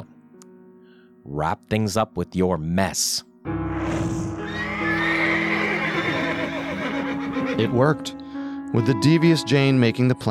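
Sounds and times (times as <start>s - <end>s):
speech: 1.2s - 4.2s, 7.6s - 10.2s
horses neighing: 4.4s - 7.8s.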